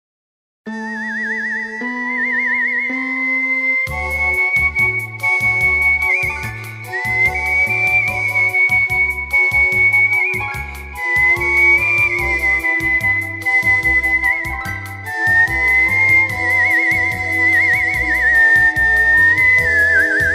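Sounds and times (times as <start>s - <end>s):
whistling for a parrot: 0.7s - 20.3s.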